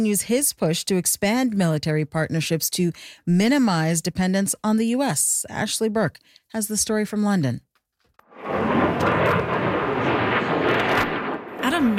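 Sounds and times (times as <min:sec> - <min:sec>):
speech: 0:00.0 - 0:07.7
fighter jet flying over air show: 0:08.3 - 0:11.9.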